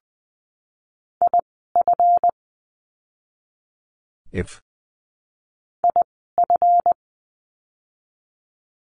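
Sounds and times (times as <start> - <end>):
Morse code tones at 20 words per minute: 1.2 - 2.3, 5.9 - 7.0
speech: 4.3 - 4.7.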